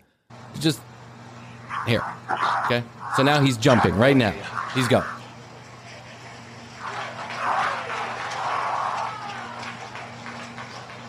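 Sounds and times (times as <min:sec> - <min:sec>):
speech: 0:00.6 - 0:00.9, 0:01.8 - 0:05.2
people clapping: 0:06.8 - 0:11.0.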